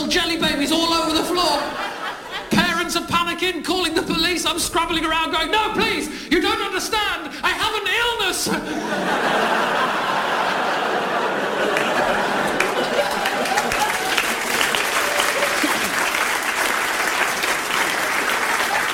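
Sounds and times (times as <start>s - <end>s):
laughter: 0.0s - 2.8s, 8.4s - 18.9s
speech: 3.4s - 10.3s
audience applause: 9.2s - 18.9s.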